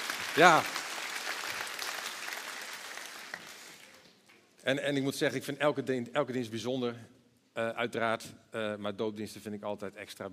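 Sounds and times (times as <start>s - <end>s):
audience applause: 0.0s - 4.0s
speech: 0.4s - 0.8s, 4.7s - 10.3s.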